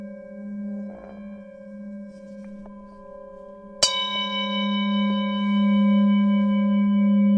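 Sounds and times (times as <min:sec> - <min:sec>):
bells ringing: 0:02.8 - 0:07.2.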